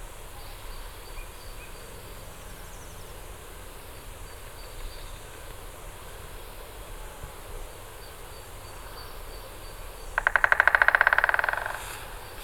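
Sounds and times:
white-backed woodpecker call: 9.9 - 12.4.

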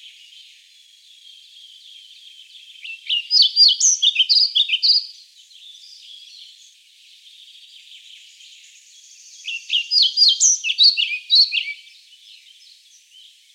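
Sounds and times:
pied flycatcher voice: 2.8 - 5.1, 9.1 - 11.9.

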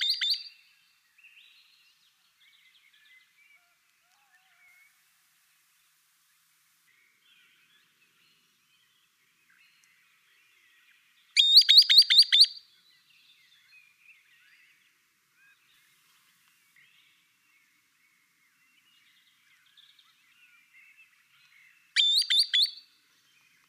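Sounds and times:
green sandpiper calling: 0.0 - 0.5, 11.4 - 12.6, 22.0 - 22.8.

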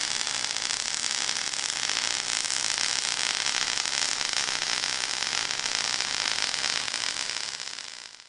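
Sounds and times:
electric current: 0.0 - 8.2.

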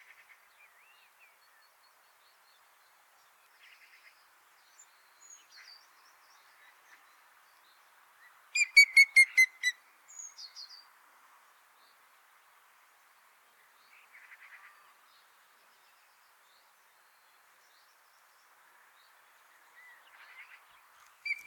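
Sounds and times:
grey-headed woodpecker calling: 8.5 - 9.8, 21.3 - 21.4.

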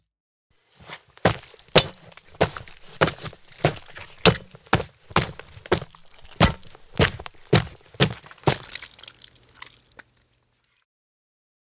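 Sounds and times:
cutting sounds: 0.8 - 9.0.

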